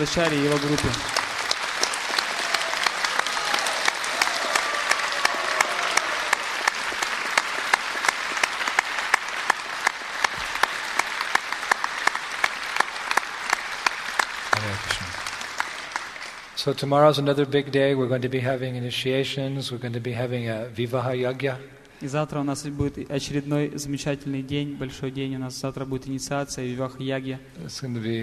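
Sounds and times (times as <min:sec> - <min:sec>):
speech: 0:00.0 - 0:01.2, 0:16.6 - 0:28.2
audience applause: 0:00.0 - 0:16.6.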